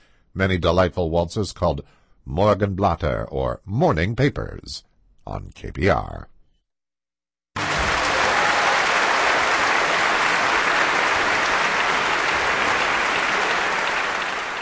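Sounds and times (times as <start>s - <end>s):
speech: 0.4s - 6.3s
concert audience applause for an orchestra: 7.6s - 14.6s.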